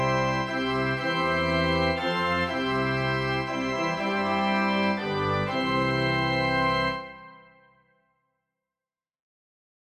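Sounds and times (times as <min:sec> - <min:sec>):
organ hymn: 0:00.0 - 0:07.8.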